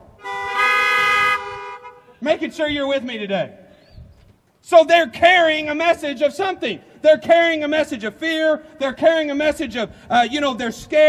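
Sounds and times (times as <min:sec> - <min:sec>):
car horns honking: 0:00.2 - 0:02.2
speech: 0:02.2 - 0:03.6, 0:04.7 - 0:11.0.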